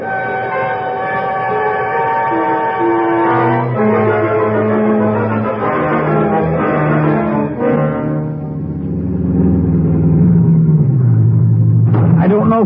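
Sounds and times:
train engine rumbling pulling out of the station: 0:00.0 - 0:12.6.

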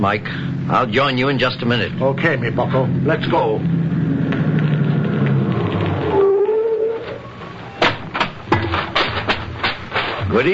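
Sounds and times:
speech: 0:00.0 - 0:04.0, 0:10.3 - 0:10.5
approaching car engine rumble: 0:00.0 - 0:10.5
sharp clunks and knocks: 0:04.2 - 0:10.5.

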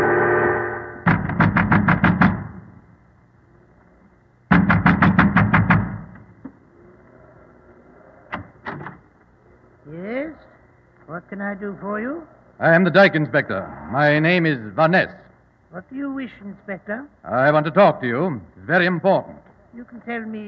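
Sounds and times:
fist pounding on the wooden door of a windmill: 0:01.1 - 0:02.7, 0:04.5 - 0:06.2
speech: 0:11.4 - 0:20.4.

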